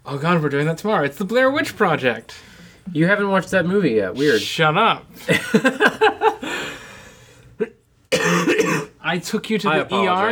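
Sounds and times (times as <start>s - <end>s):
speech: 0.1s - 6.4s, 9.1s - 10.3s
laughter: 5.2s - 6.8s
cough: 8.1s - 9.0s.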